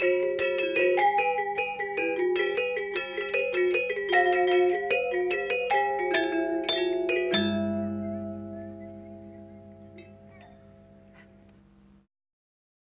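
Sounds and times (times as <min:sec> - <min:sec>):
selunding gamelan playing: 0:00.0 - 0:11.5.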